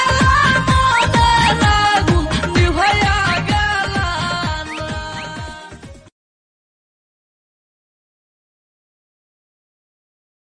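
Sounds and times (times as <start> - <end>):
Bangla film song: 0.0 - 6.1.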